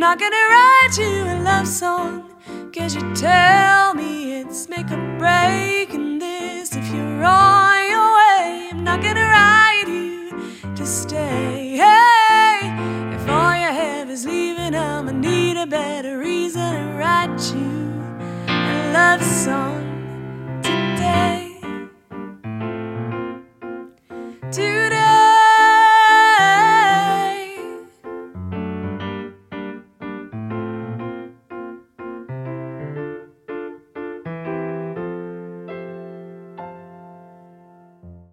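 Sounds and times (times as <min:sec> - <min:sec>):
singer-pianist singing a love song: 0:00.0 - 0:22.3, 0:24.1 - 0:28.4
piano played by singer-pianist: 0:00.0 - 0:38.3.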